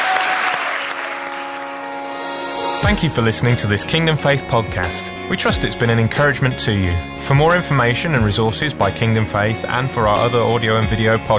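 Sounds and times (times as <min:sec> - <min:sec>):
audience applause: 0:00.0 - 0:02.1
speech: 0:02.8 - 0:11.3.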